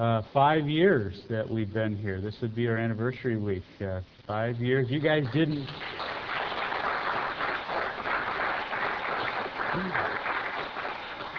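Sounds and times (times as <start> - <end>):
speech: 0.0 - 6.0, 9.8 - 10.2
audience applause: 5.3 - 11.3.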